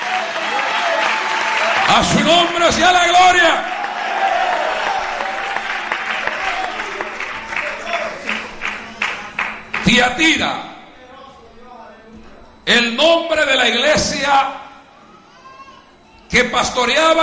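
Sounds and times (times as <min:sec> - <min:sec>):
audience applauding: 0:00.0 - 0:10.1
speech: 0:01.9 - 0:03.8, 0:09.9 - 0:10.7, 0:12.7 - 0:14.6, 0:16.3 - 0:17.2.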